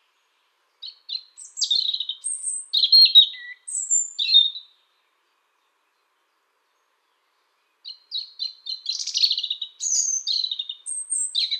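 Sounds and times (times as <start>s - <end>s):
European robin singing: 0.0s - 11.5s.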